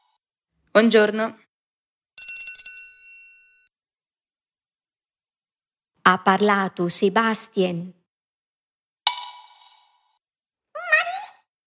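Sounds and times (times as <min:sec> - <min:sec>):
speech: 0:00.8 - 0:01.4, 0:06.1 - 0:08.0
small bell chime signalling time to answer: 0:02.2 - 0:03.7.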